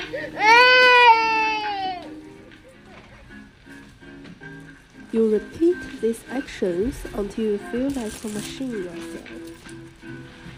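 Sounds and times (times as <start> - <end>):
baby crying: 0.0 - 2.2
speech: 0.1 - 0.6, 5.2 - 9.8.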